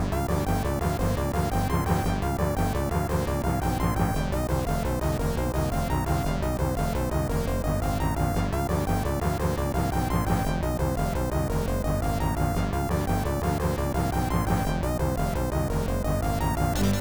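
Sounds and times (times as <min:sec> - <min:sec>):
boss battle background music: 0:00.1 - 0:16.8.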